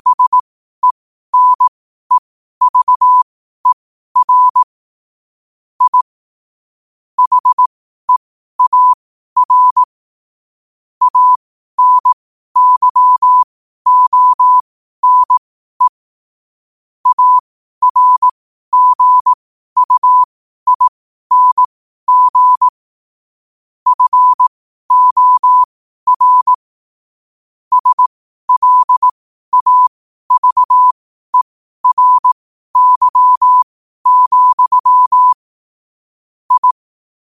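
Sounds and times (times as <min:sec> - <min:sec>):
morse code at 5 wpm: 0:00.0 - 0:01.7, 0:02.6 - 0:04.7, 0:05.8 - 0:06.0, 0:07.2 - 0:09.9, 0:11.0 - 0:15.9, 0:17.0 - 0:22.7, 0:23.9 - 0:26.7, 0:27.7 - 0:35.5, 0:36.5 - 0:36.8.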